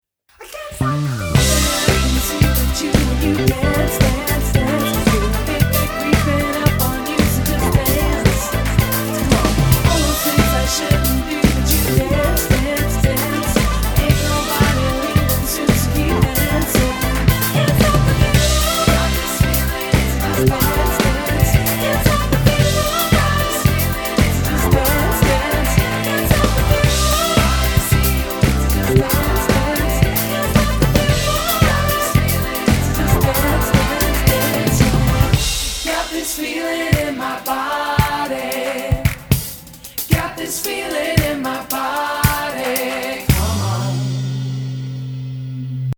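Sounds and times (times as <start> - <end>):
rock pop band: 0.8 - 45.2.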